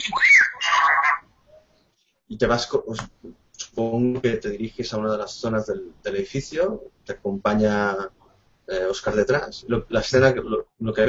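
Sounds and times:
small droid screaming in fear: 0.0s - 1.2s
speech: 2.3s - 11.0s.

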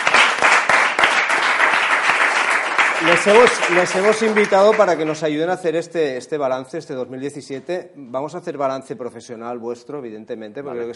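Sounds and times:
audience applause: 0.0s - 5.3s
speech: 3.0s - 10.9s.

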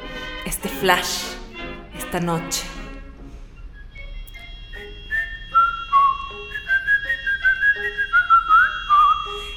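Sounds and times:
playful 1920s cabaret song recording: 0.0s - 9.5s
speech: 0.7s - 1.4s, 2.1s - 2.8s.

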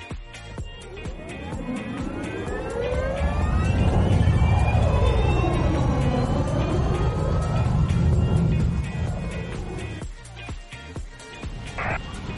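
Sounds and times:
electric car motor whine: 0.8s - 10.1s
tire rumble: 0.9s - 10.2s.

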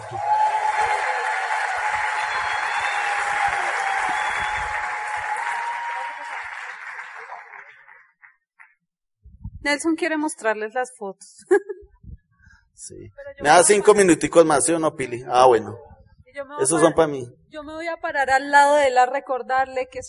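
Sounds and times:
laughter: 0.0s - 6.4s
audience applause: 0.0s - 8.1s
speech: 9.7s - 11.7s, 12.8s - 20.0s.

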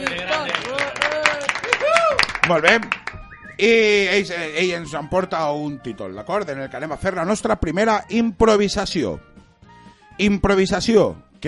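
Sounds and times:
people whooping and cheering: 0.0s - 2.5s
applause in radio studio: 0.0s - 3.3s
speech: 2.5s - 3.0s, 3.6s - 9.3s, 10.2s - 11.4s.

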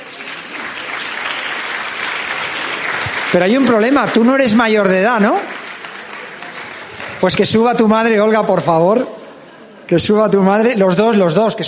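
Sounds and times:
crowd applause: 0.0s - 8.5s
speech: 3.3s - 5.5s, 7.2s - 9.2s, 9.9s - 11.6s.

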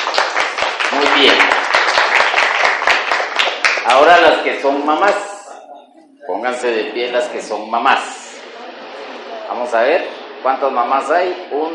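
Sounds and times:
audience applause: 0.0s - 4.3s
speech: 1.0s - 1.6s, 3.9s - 5.3s, 6.3s - 8.2s, 9.5s - 11.7s.

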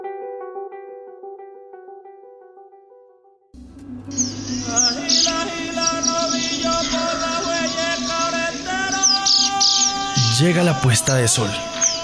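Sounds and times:
scarlet ibis corocora call: 3.7s - 12.0s
speech: 10.5s - 11.9s.

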